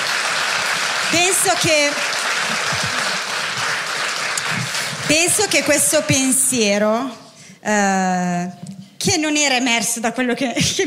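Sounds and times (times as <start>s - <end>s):
audience applause: 0.0s - 5.7s
speech: 1.1s - 2.8s, 5.1s - 10.8s.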